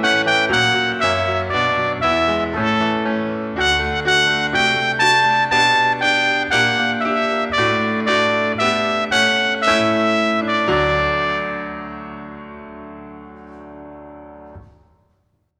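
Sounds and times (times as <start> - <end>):
trumpet: 0.0 - 12.4
piano: 0.0 - 15.5.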